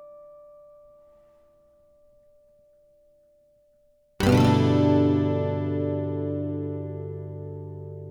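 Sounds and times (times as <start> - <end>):
guitar arpeggios and harmonics in E minor: 4.2 - 8.0.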